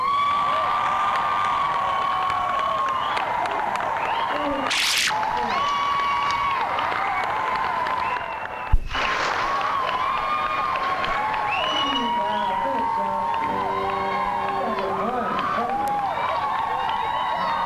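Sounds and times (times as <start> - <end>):
crowd: 0.0 - 17.6.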